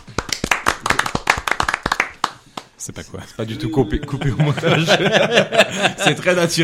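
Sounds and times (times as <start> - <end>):
audience clapping: 0.0 - 2.8
speech: 2.8 - 6.6
laughter: 3.5 - 6.6.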